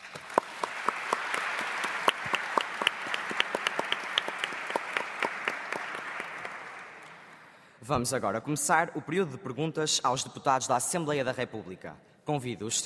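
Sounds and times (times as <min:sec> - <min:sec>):
audience applause: 0:00.0 - 0:07.4
speech: 0:07.9 - 0:12.8.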